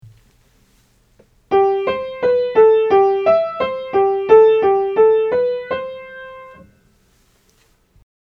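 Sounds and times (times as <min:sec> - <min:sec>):
major scales being played: 0:01.5 - 0:06.7.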